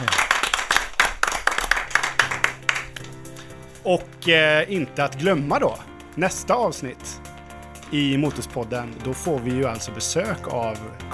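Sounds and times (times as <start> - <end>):
applause: 0.0 - 3.2
speech: 3.9 - 7.2, 7.9 - 11.1.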